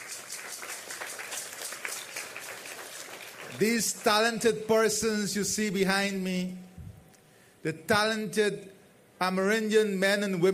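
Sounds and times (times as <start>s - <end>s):
crowd applause: 0.0s - 4.2s
speech: 3.6s - 6.7s, 7.6s - 10.5s.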